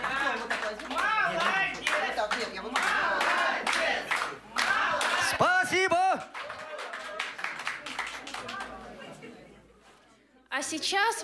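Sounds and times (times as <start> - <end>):
audience applause in a concert hall in Vladimir: 0.0 - 8.8
speech: 10.7 - 11.2.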